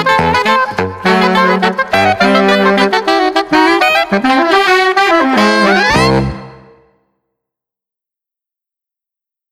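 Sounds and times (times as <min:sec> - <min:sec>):
saxophone quartet: 0:00.0 - 0:06.9.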